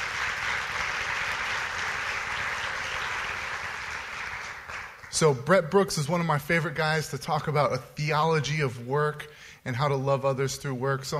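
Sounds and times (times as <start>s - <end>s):
audience applause as a guest is welcomed up for an interview: 0.0s - 5.3s
speech: 5.2s - 11.1s.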